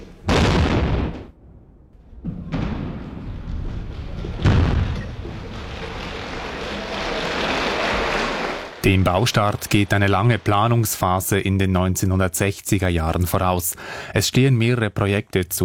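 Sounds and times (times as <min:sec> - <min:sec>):
first tunnel construction blast explosion: 0:00.3 - 0:06.4
applause: 0:05.5 - 0:11.3
speech: 0:08.8 - 0:15.6.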